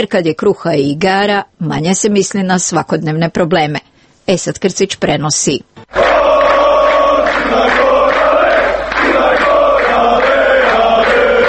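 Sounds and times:
speech: 0:00.0 - 0:06.1
football fans chanting and cheering at a European Championship qualifying match: 0:05.9 - 0:11.4.

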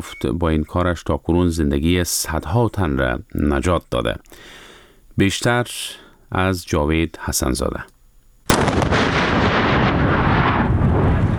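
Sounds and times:
speech: 0:00.0 - 0:04.6, 0:05.2 - 0:07.9
heavy roaring rumble of landmine explosion: 0:08.5 - 0:11.3
newly found landmine detonated on the Urozgan–Kandahar highway: 0:08.5 - 0:11.3.

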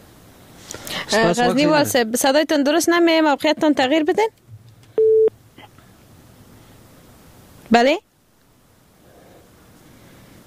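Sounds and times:
hiss: 0:00.0 - 0:10.4
speech: 0:01.1 - 0:04.4, 0:07.7 - 0:08.1
telephone busy tone beep after a phone call was cut off: 0:05.0 - 0:05.3.

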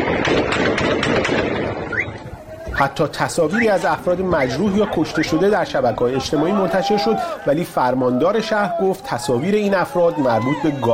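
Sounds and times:
gunfire: 0:00.0 - 0:02.2
crowd din: 0:01.5 - 0:10.9
speech: 0:02.8 - 0:10.9.

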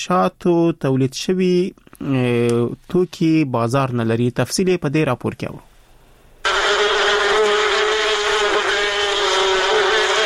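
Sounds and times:
speech: 0:00.0 - 0:05.7
honey bees buzzing at a bee farm in Kunduz: 0:06.5 - 0:10.2.

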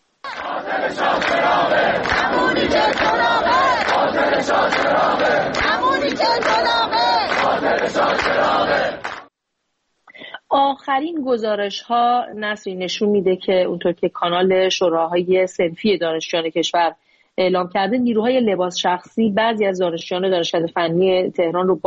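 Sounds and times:
protesting students chanting slogans: 0:00.2 - 0:09.3
speech: 0:10.9 - 0:21.8.

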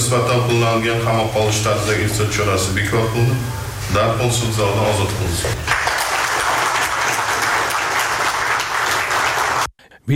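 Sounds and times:
speech: 0:00.1 - 0:05.8
applause in a courtroom: 0:05.4 - 0:09.7.

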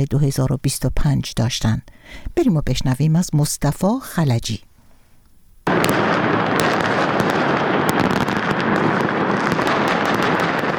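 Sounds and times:
speech: 0:00.0 - 0:04.7
New Year fireworks exploding over a city square: 0:05.6 - 0:10.7.

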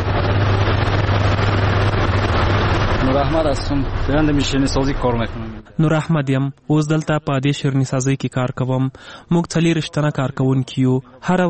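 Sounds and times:
sweets-making machine running in a confectionery workshop: 0:00.0 - 0:05.8
speech: 0:03.2 - 0:11.4.

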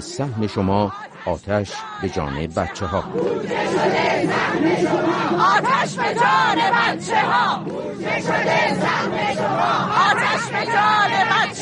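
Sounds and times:
speech: 0:00.0 - 0:11.6
protesters shouting slogans together: 0:00.3 - 0:11.6
steady roar of the gathering: 0:03.0 - 0:11.6.

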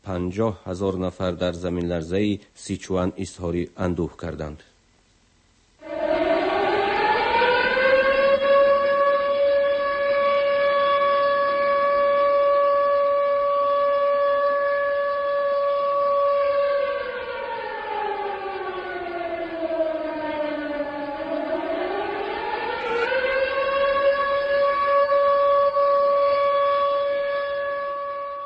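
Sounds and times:
speech: 0:00.1 - 0:04.7
air-raid siren sounding for earthquake memorial in China: 0:05.8 - 0:28.4.

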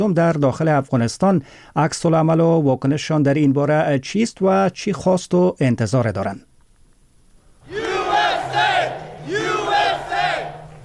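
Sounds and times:
speech: 0:00.0 - 0:06.5
supporters cheering and chanting at election victory: 0:07.6 - 0:10.8.

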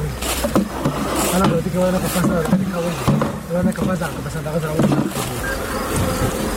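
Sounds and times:
honey bees buzzing at a bee farm in Dand district, Kandahar: 0:00.0 - 0:06.5.

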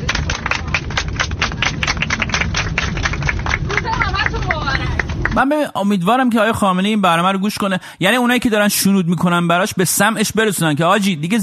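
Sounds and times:
crowd clapping: 0:00.0 - 0:05.6
speech: 0:05.4 - 0:11.4.

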